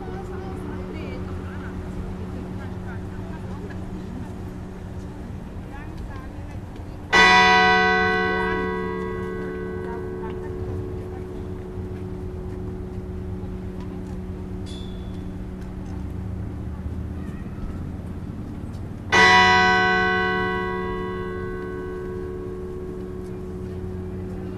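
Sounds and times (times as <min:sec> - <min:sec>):
Akureyrarkirkja church bells tolling for a funeral: 0:07.0 - 0:15.5, 0:19.1 - 0:24.5.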